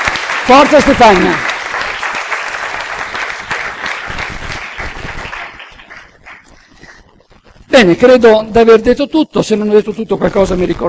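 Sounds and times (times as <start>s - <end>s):
audience applause: 0.0s - 7.1s
speech: 0.5s - 1.5s, 7.8s - 10.8s.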